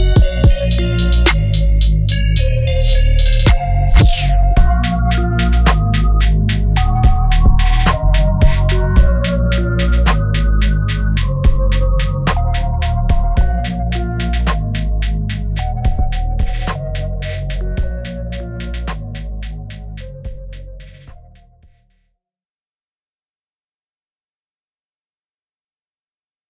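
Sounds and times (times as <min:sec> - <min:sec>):
instrumental outro music: 0:00.0 - 0:21.6.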